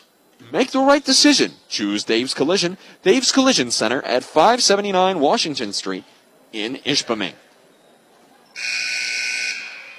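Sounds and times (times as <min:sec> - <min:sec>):
speech: 0:00.5 - 0:07.4
basketball game buzzer: 0:08.6 - 0:09.9.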